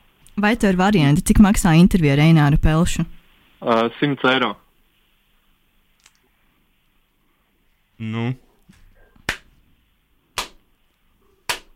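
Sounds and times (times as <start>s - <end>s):
speech: 0.4s - 4.6s, 8.0s - 8.4s
hand claps in studio: 9.2s - 9.5s, 10.4s - 10.6s, 11.5s - 11.7s.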